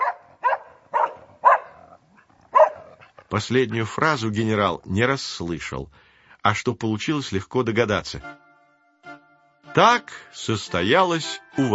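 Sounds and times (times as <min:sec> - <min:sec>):
dog barking: 0:00.0 - 0:03.1
speech: 0:03.3 - 0:08.4, 0:09.8 - 0:11.7.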